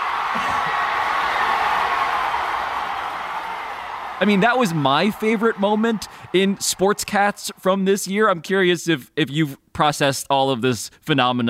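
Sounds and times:
crowd erupting in applause: 0:00.0 - 0:07.8
speech: 0:04.2 - 0:11.4.

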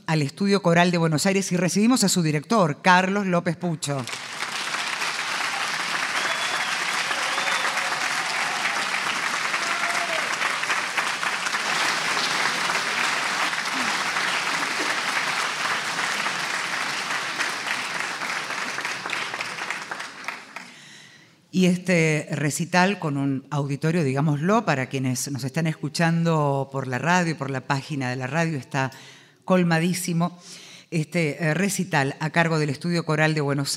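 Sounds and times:
speech: 0:00.1 - 0:04.4, 0:21.6 - 0:33.7
audience applause: 0:04.1 - 0:20.9.

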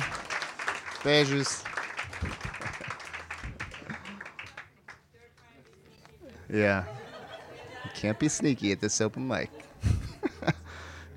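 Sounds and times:
crowd applauding: 0:00.0 - 0:05.8
speech: 0:01.0 - 0:02.5, 0:06.5 - 0:07.0, 0:07.9 - 0:09.7
laughter: 0:02.0 - 0:04.4, 0:06.6 - 0:11.0.

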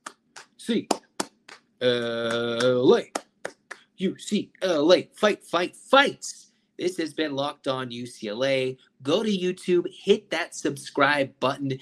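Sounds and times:
rhythmic clapping count by sports fans: 0:00.0 - 0:03.8
speech: 0:00.7 - 0:01.0, 0:01.8 - 0:03.2, 0:04.0 - 0:11.8.

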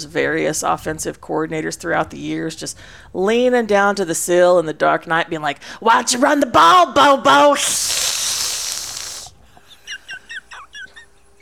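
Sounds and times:
speech: 0:00.0 - 0:08.4
person imitating a snake hiss: 0:07.6 - 0:09.4.

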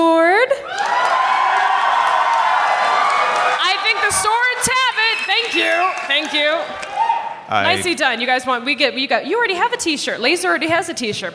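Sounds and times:
audience clapping: 0:00.6 - 0:07.3
speech: 0:05.9 - 0:06.9, 0:07.5 - 0:11.3.

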